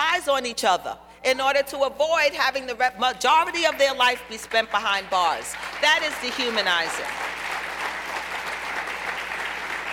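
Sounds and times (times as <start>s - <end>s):
speech: 0.2s - 7.2s
audience clapping for a speaker at a talk: 4.5s - 9.9s.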